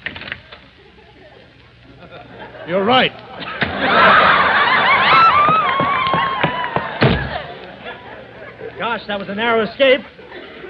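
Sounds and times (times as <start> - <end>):
laughter: 0.8 - 10.6
speech: 2.7 - 4.2, 8.9 - 10.1
closet door opening: 5.5 - 7.5.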